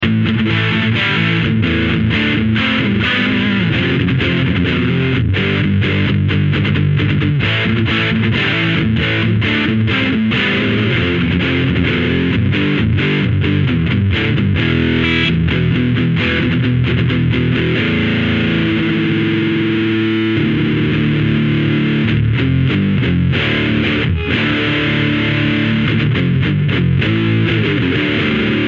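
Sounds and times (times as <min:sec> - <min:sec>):
distortion: 0:00.0 - 0:28.6.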